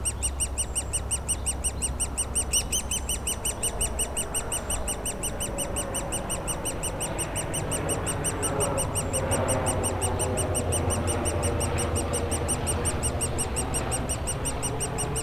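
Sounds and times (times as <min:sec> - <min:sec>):
woodpecker nestlings chirping from their cavity in a dead tree trunk: 0:00.0 - 0:15.2.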